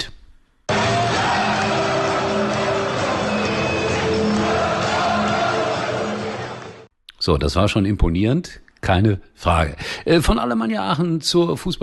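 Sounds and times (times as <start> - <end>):
huge stadium crowd of football fans cheering: 0.7 - 6.9
speech: 7.2 - 11.8.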